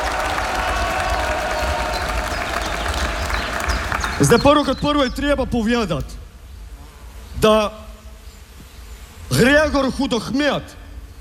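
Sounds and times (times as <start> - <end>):
faint cheering: 0.0 - 4.4
crowd applauding at outdoor picnic: 0.0 - 4.8
speech: 4.2 - 6.2, 7.4 - 7.8, 9.4 - 10.8.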